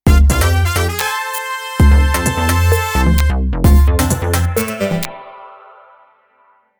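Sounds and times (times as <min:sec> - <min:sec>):
game round win jingle: 0:00.1 - 0:05.1.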